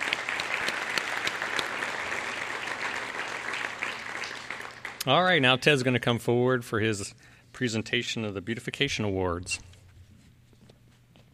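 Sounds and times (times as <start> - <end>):
round of applause from a crowd: 0.0 - 5.4
speech: 5.0 - 9.7.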